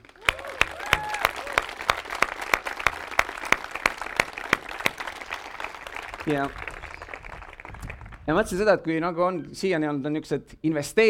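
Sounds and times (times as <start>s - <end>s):
audience applause: 0.0s - 8.4s
speech: 6.3s - 6.6s, 8.3s - 11.0s.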